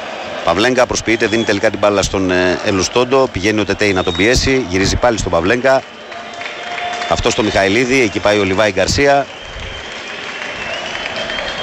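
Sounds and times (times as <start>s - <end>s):
applause from the official stands at OAKA stadium during a football match: 0.0s - 11.6s
speech: 0.4s - 6.0s, 7.1s - 9.4s.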